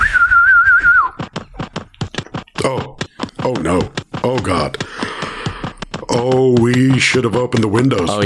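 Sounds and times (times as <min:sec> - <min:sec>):
bird whistling: 0:00.0 - 0:01.2
sharp knocks or taps: 0:01.1 - 0:08.2
speech: 0:03.6 - 0:04.9, 0:06.2 - 0:08.2.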